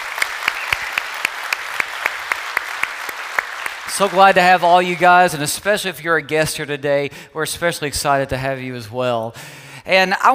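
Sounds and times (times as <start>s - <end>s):
church congregation applauding: 0.0s - 5.5s
evenly spaced sharp claps: 0.0s - 5.5s
speech: 3.9s - 10.3s.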